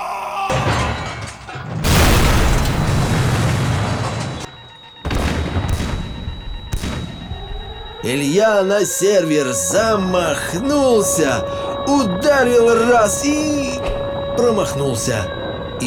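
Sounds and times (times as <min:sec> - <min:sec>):
doors smashed off hinges into splinters: 0:00.5 - 0:08.1
speech: 0:08.0 - 0:15.8.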